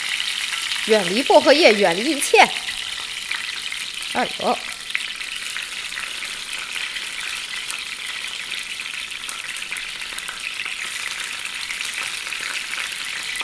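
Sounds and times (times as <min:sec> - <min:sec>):
food sizzling while frying in hot oil: 0:00.0 - 0:13.4
speech: 0:00.8 - 0:02.7, 0:04.2 - 0:04.7.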